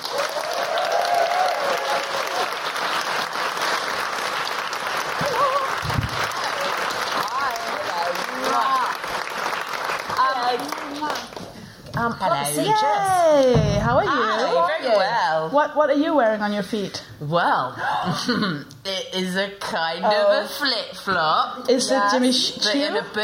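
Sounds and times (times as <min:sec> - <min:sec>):
audience cheering: 0:00.0 - 0:10.0
audience applause for a comedian at a live show: 0:00.0 - 0:11.5
speech: 0:12.0 - 0:23.2.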